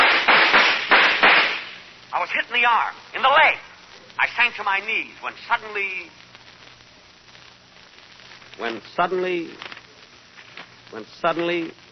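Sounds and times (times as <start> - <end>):
police gunfire: 0.0 - 1.9
speech: 2.3 - 6.2, 8.6 - 9.7, 10.9 - 11.8.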